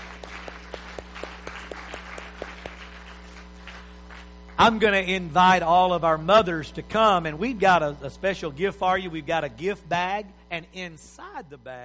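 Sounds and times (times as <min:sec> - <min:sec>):
audience hand clapping: 0:00.0 - 0:04.8
speech: 0:04.6 - 0:11.8.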